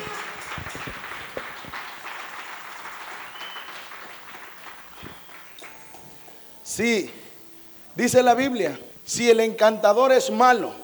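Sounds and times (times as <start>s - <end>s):
congregation clapping in a Spanish-language church service: 0.0s - 6.4s
speech: 6.8s - 7.2s, 8.0s - 10.8s.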